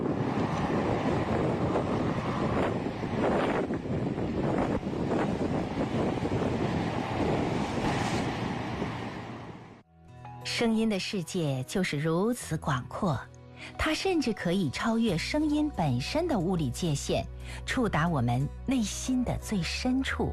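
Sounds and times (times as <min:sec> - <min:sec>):
roaring sandstorm wind: 0:00.0 - 0:09.8
speech: 0:10.6 - 0:20.3.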